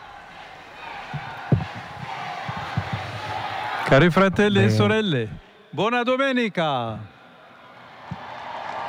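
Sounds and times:
people shouting in St Peter's Square: 0.0 - 5.2
faithful crowd in St Peter's Square murmuring: 0.0 - 5.5
speech: 3.9 - 7.1.

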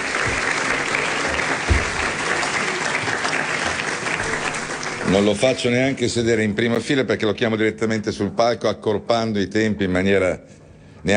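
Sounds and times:
audience applause: 0.0 - 6.0
speech: 5.2 - 11.1.

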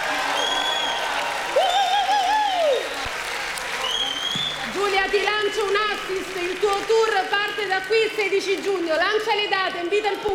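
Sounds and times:
audience applause: 0.0 - 10.3
wavering rising-and-falling whistle or whoop: 0.3 - 3.0
speech: 5.1 - 10.3.

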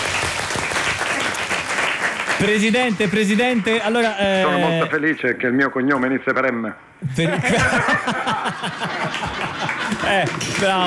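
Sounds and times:
audience applause: 0.0 - 3.8, 8.1 - 10.8
speech: 2.4 - 10.8
laughter: 7.0 - 10.8.

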